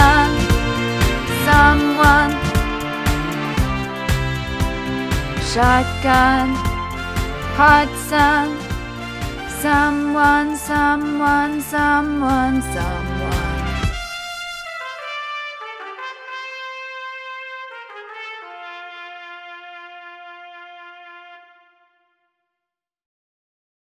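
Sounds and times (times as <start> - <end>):
tenor singing: 0.0 - 4.5, 5.3 - 8.8, 9.5 - 13.9.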